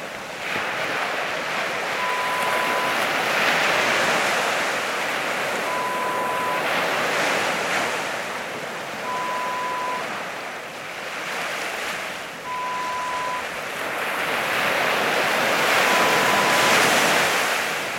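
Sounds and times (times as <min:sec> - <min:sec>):
calm waves: 0:00.0 - 0:17.9.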